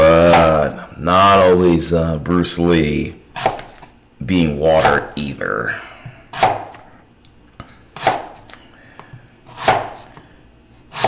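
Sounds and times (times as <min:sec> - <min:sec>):
apples being cut with a knife: 0:00.0 - 0:00.8, 0:03.3 - 0:03.9, 0:04.7 - 0:05.3, 0:06.1 - 0:06.9, 0:08.0 - 0:08.6, 0:09.5 - 0:11.0
speech: 0:01.0 - 0:03.6, 0:04.2 - 0:06.5.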